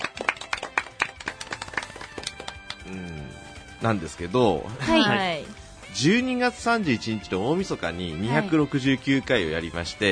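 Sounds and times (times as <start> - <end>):
applause: 0.0 - 2.9
speech: 2.9 - 10.1.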